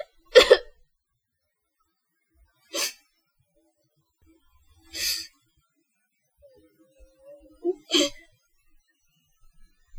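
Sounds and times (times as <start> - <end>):
person crying: 0.4 - 0.6.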